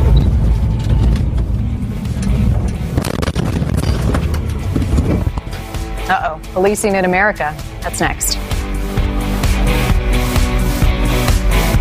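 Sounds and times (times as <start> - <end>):
heavy wind buffeting: 0.0 - 9.8
ranger vehicle engine rumble in pursuit: 0.0 - 10.7
speech: 6.6 - 8.5.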